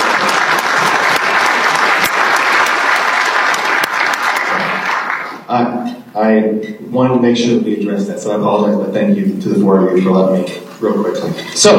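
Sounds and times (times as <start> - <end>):
group applause: 0.0 - 5.5
speech: 6.2 - 11.7.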